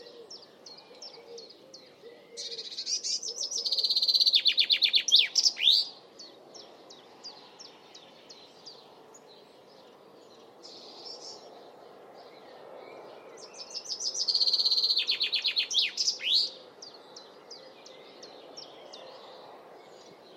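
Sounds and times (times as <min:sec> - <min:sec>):
bird song of high chirping notes and twitters: 0:00.0 - 0:20.3.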